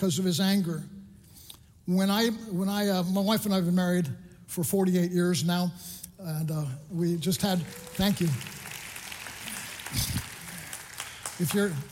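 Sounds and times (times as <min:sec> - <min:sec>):
speech: 0:00.0 - 0:01.0, 0:01.9 - 0:08.6, 0:11.4 - 0:11.8
audience applause: 0:07.4 - 0:11.8.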